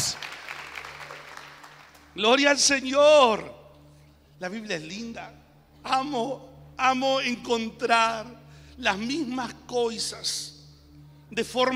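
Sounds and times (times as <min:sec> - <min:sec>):
audience applause: 0:00.0 - 0:02.1
speech: 0:02.2 - 0:03.6, 0:04.4 - 0:10.5, 0:11.3 - 0:11.7.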